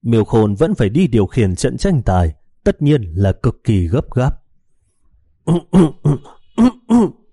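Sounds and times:
speech: 0.0 - 4.4, 5.5 - 7.2
person coughing harshly: 5.5 - 7.3.

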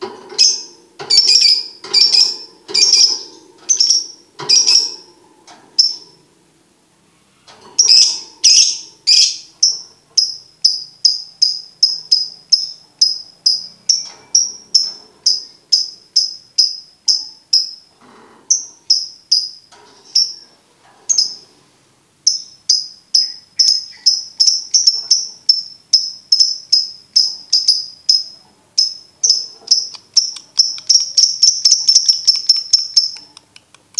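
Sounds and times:
lovebird sharp high chirps: 0.4 - 5.0, 7.8 - 17.8, 22.3 - 33.4.

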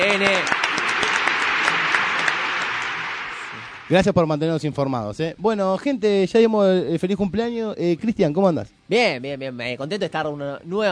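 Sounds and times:
speech: 0.0 - 1.2, 3.9 - 10.8
applause: 0.0 - 4.4.

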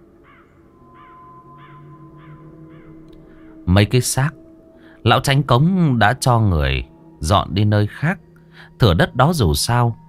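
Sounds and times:
flock of crows on a red silk-cotton tree cawing: 0.2 - 3.7
speech: 3.7 - 4.4, 5.0 - 10.0.

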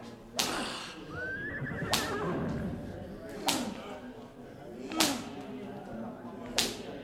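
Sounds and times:
whip cracks driving horses: 0.4 - 0.8, 3.4 - 3.8, 4.9 - 5.4, 6.6 - 6.9
horse whinnying: 1.1 - 3.1.

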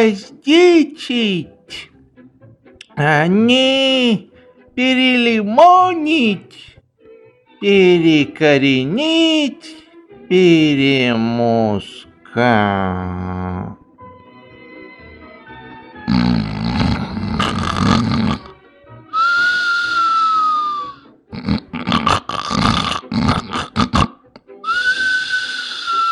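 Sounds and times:
speech: 0.0 - 1.9, 3.0 - 6.7, 7.6 - 13.8
snoring with whistling: 16.1 - 18.6, 19.2 - 24.1, 24.7 - 26.1.

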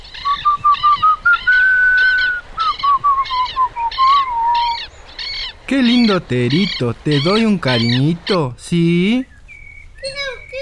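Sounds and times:
boy whistling a tune while walking in: 0.2 - 4.8
speech: 5.7 - 9.3.

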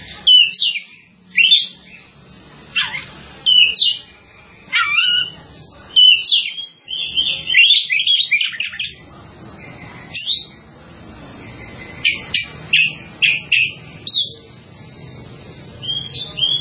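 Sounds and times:
bird singing whistled phrases: 0.0 - 2.0, 2.8 - 4.1, 6.0 - 9.0, 12.0 - 14.4, 15.8 - 16.6
low noise: 0.0 - 16.6.

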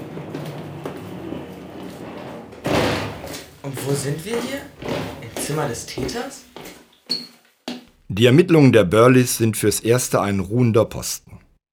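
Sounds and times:
heavy door being pushed open: 1.2 - 6.5
speech: 3.9 - 4.9, 5.5 - 6.5, 8.2 - 11.4.

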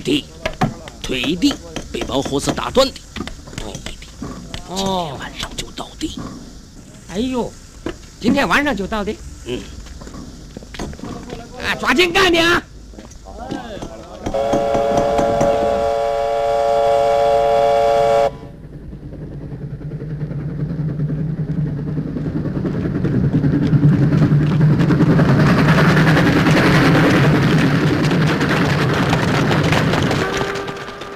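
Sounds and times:
speech: 0.0 - 0.4, 1.1 - 3.0, 4.7 - 6.4, 7.1 - 7.6, 8.2 - 9.8, 11.7 - 12.7, 14.3 - 14.9
moving train wheels clattering and roaring: 0.0 - 9.2, 9.8 - 31.1
train whistle at night: 14.3 - 18.6, 29.9 - 31.1.

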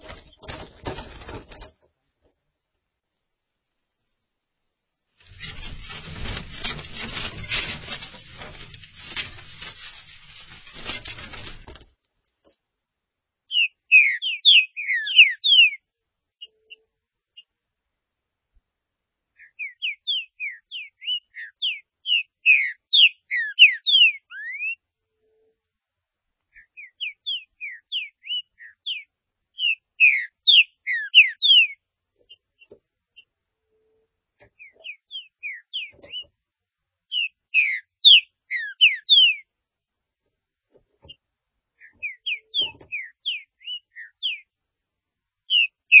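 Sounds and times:
Green-winged saltator singing: 13.5 - 15.8, 19.4 - 24.8, 26.6 - 31.8, 34.6 - 36.3, 37.1 - 39.4, 41.8 - 44.4, 45.5 - 45.9.

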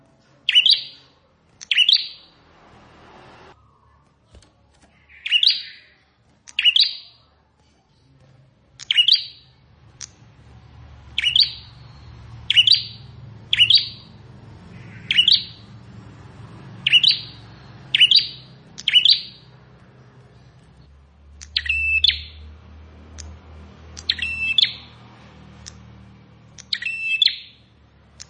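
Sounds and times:
plain prinia giving sharp buzzy chirp phrases: 0.5 - 2.4, 5.0 - 7.2, 11.1 - 15.8, 16.8 - 19.5, 21.4 - 22.5, 24.0 - 25.0, 26.5 - 28.2.

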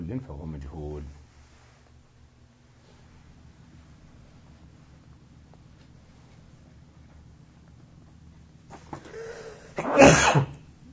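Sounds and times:
speech: 0.1 - 1.2
sneeze: 9.1 - 10.6.

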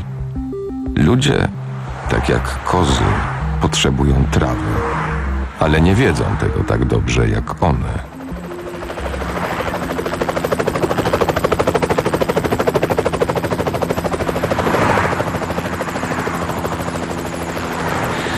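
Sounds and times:
helicopter flying overhead: 0.0 - 18.3
speech: 1.0 - 8.1.

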